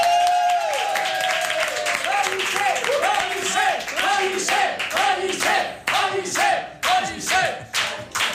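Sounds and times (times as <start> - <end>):
studio audience cheering with whoops and shouts: 0.0 - 2.1
studio audience applause: 0.0 - 5.5
rhythmic clapping: 0.0 - 8.3.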